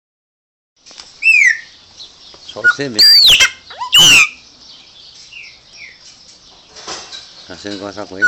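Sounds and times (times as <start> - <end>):
brief rustle: 0.8 - 8.2
Chopi blackbird song: 1.2 - 6.2, 7.4 - 8.2
speech: 2.6 - 4.2, 7.5 - 8.2.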